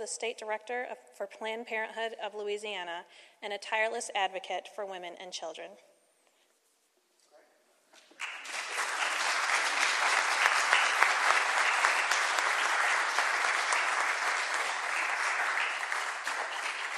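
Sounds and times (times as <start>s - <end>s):
speech: 0.0s - 5.9s
audience applause: 8.1s - 16.9s.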